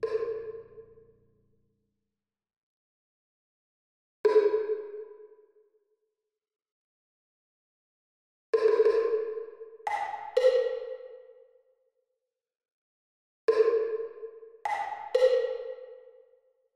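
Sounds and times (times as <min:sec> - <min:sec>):
percussion: 0:00.0 - 0:01.5, 0:04.2 - 0:05.6, 0:08.6 - 0:11.6, 0:13.5 - 0:16.4.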